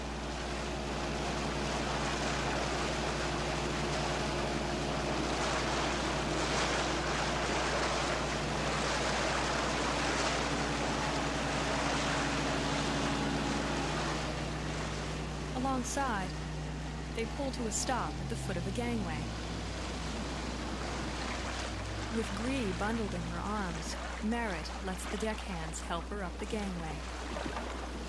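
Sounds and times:
inflatable dinghy motor drone: 0.0 - 28.0
low hum: 0.0 - 28.0
water wash from inflatable dinghies on open water: 0.0 - 28.0
speech: 15.8 - 16.3, 17.2 - 19.4, 22.2 - 27.8.

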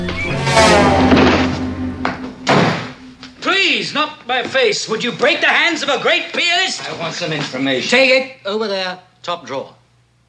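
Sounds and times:
sharp impacts: 0.0 - 4.1
hefty punch landing: 1.1 - 3.3
man knocked down crashing: 2.1 - 3.1
speech: 3.8 - 9.8.

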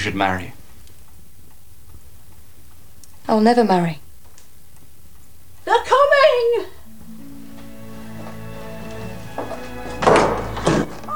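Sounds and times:
speech: 0.0 - 0.6, 3.3 - 4.0
door flung open: 10.0 - 11.1.

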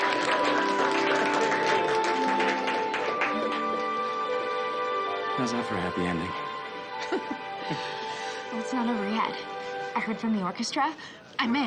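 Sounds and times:
two people clapping at the piano: 0.0 - 4.4
speech: 5.4 - 6.4, 7.1 - 11.6.

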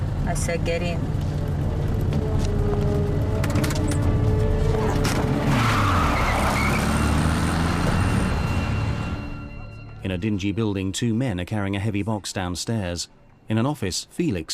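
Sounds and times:
old VW Beetle engine running as the car drives and pulls up: 0.0 - 9.0
speech: 0.3 - 1.3, 10.0 - 14.5.

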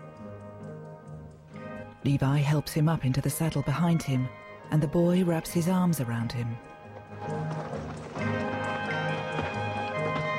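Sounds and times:
speech: 2.0 - 7.4
ridden horses clip-clopping along a trail up a small hill: 5.0 - 10.3.

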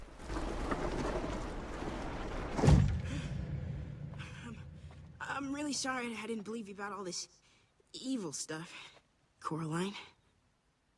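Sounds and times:
heavy well lid scraping over the opening: 0.0 - 4.9
speech: 5.7 - 10.2.

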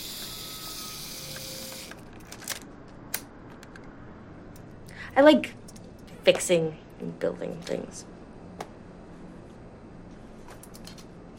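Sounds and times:
camera self-timer mechanical whirring buzz: 0.0 - 3.2
speech: 5.1 - 5.6, 6.3 - 8.1.

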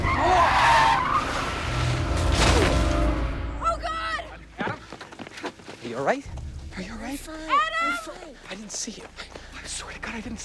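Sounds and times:
car skid: 0.0 - 3.1
car tire screech while swerving: 0.0 - 3.7
speech: 6.0 - 10.4.

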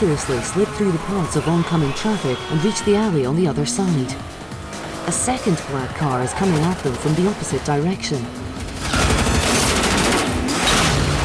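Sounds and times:
speech: 0.0 - 4.4, 5.1 - 8.9
automatic machine gun fire at a passing car during a chase: 8.6 - 11.2.

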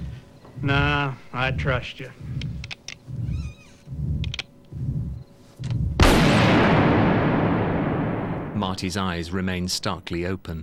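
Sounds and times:
low rumbling pulses: 0.0 - 10.0
speech: 0.6 - 2.4, 8.6 - 10.6
pistol gunshot: 6.0 - 8.6.

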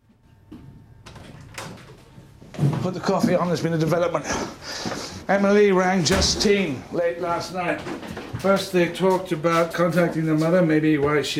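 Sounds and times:
door being opened: 0.6 - 3.0
speech: 2.8 - 11.3.

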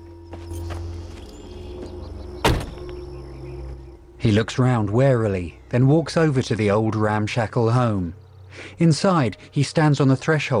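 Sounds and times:
low car engine hum: 0.0 - 10.5
car door shutting: 2.4 - 3.8
speech: 4.2 - 10.5.

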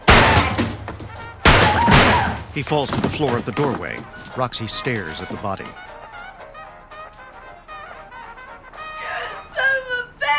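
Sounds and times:
gunshots: 0.0 - 3.4
speech: 2.6 - 5.9.

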